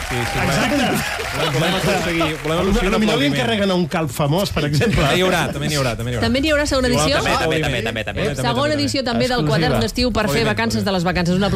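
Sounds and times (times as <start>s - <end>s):
audience applause for a guest: 0.0s - 3.8s
laughter: 0.1s - 3.6s, 4.5s - 6.4s, 7.0s - 9.7s
speech: 0.1s - 11.5s.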